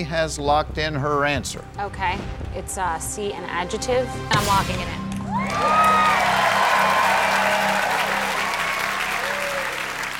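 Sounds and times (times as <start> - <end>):
speech: 0.0 - 6.4
studio audience applause: 5.3 - 10.1.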